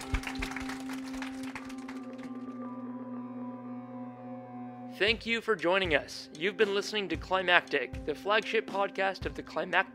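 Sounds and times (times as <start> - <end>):
audience applause: 0.0 - 2.5
speech: 5.0 - 9.9.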